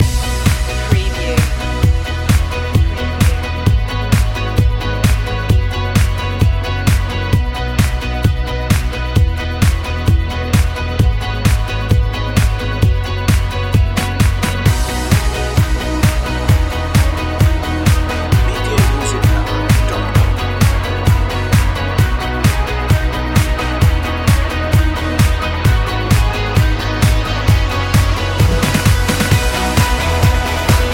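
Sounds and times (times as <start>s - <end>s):
electric guitars: 0.0s - 30.9s.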